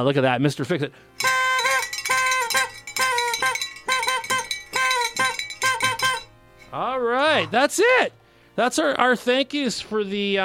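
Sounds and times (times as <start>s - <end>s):
speech: 0.0s - 1.3s, 7.0s - 10.4s
small bell ringing: 1.2s - 6.9s.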